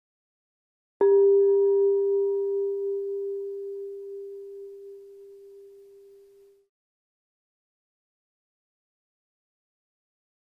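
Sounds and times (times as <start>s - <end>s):
bell ringing: 1.0s - 6.5s.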